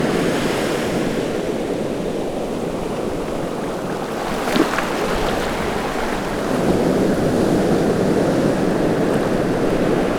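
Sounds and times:
ocean surf on coastal rocks close: 0.2 - 10.0.

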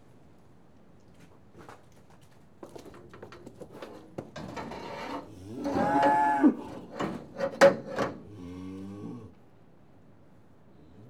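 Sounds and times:
cattle mooing: 5.3 - 7.0.

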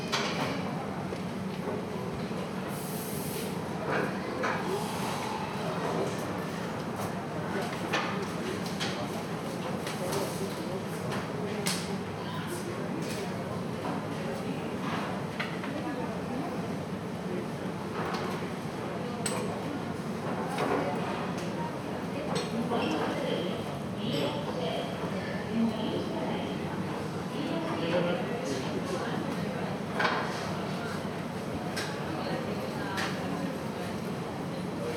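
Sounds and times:
coffee shop ambience in Sants Station Barcelona: 0.0 - 34.9.

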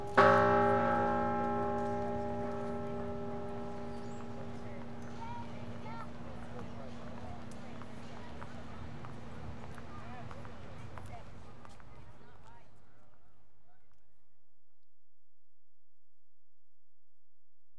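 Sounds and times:
Independence Hall bell in Philadelphia: 0.0 - 7.6.

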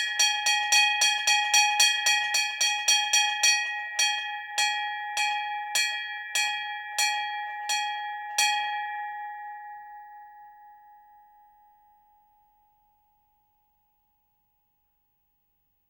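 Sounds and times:
Indian religious temple bells ringing in worship: 0.0 - 11.4.

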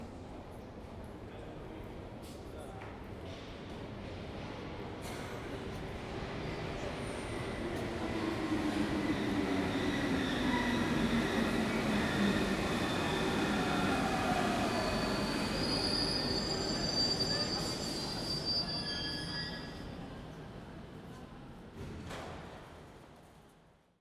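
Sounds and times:
underground metro train passing a platform: 3.8 - 21.6.

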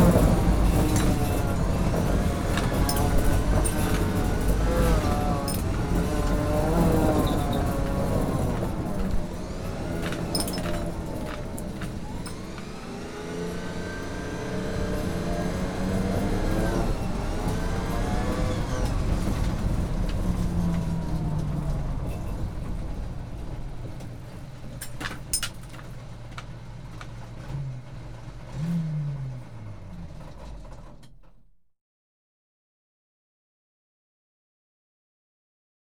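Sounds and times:
armoured personnel carrier in warfare: 0.0 - 31.4.

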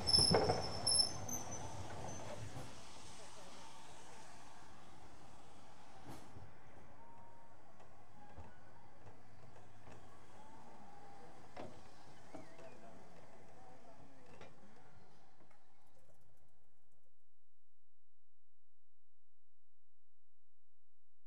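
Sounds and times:
train right doors opening: 0.0 - 4.4, 5.0 - 14.8
train arriving: 0.0 - 15.9.

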